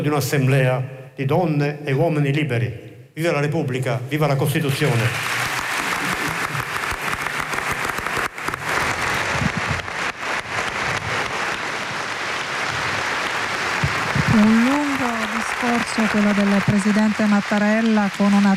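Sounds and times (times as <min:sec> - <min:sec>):
speech: 0:00.0 - 0:05.4, 0:16.1 - 0:18.5
large crowd applause for a speech: 0:04.7 - 0:18.5.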